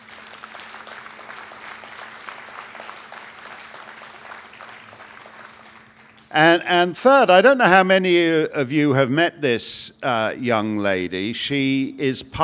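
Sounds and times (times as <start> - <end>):
audience applause welcoming a performer on stage: 0.0 - 6.3
faint steady hum: 0.0 - 12.4
speech: 6.3 - 12.4.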